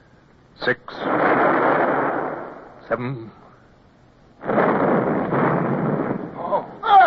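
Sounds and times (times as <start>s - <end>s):
speech: 0.6s - 1.1s, 2.9s - 3.4s
ship's cannon blasts: 1.0s - 3.0s, 4.4s - 6.9s.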